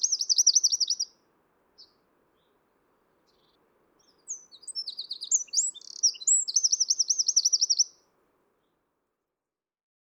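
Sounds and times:
Eurasian wren Troglodytes troglodytes singing: 0.0 - 1.1, 3.3 - 8.0.

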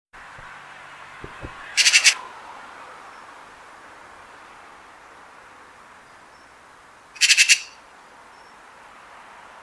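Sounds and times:
Eurasian magpie Pica pica giving harsh rattling chatter calls: 1.7 - 2.2, 7.2 - 7.8.

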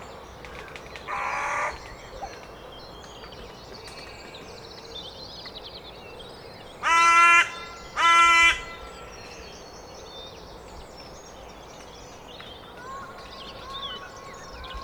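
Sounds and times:
carrion crow Corvus corone giving loud harsh even caws: 1.1 - 1.8, 6.8 - 8.9.

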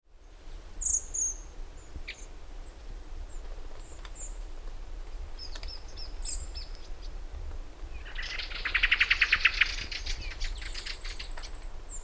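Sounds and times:
common blackbird Turdus merula calls: 0.8 - 4.4, 5.4 - 7.2, 7.9 - 12.0.

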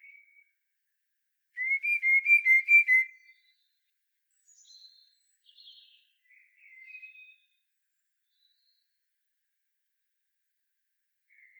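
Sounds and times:
common blackbird whistling: 1.6 - 3.1.

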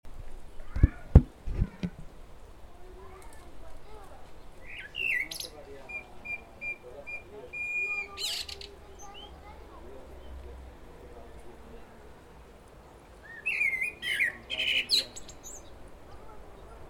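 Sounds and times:
common blackbird Turdus merula song: 4.4 - 9.4, 12.8 - 16.8.

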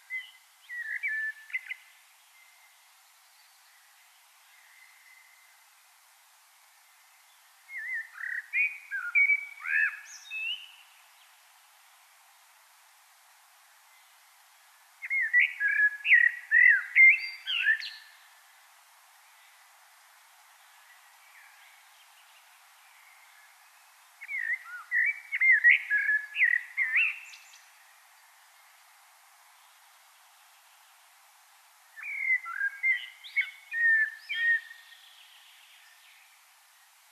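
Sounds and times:
common blackbird song: 0.0 - 5.6, 6.8 - 11.4, 13.9 - 18.4, 20.6 - 28.9, 31.8 - 37.1
faint background hiss: 0.0 - 37.1.

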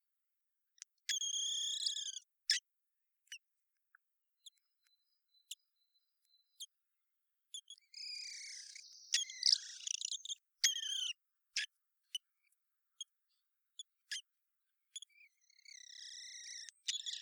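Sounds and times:
common blackbird Turdus merula hard dry chink calls: 1.1 - 2.2, 7.6 - 11.2, 15.0 - 17.2.

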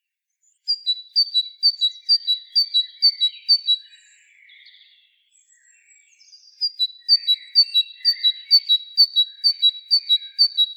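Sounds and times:
Parus major great tit singing a ringing high two-note phrase: 0.5 - 10.7.

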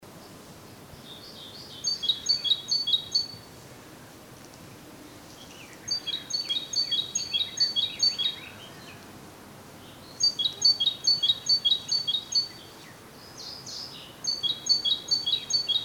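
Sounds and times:
great tit singing, Parus major: 1.1 - 3.4, 5.4 - 9.0, 9.8 - 15.8.

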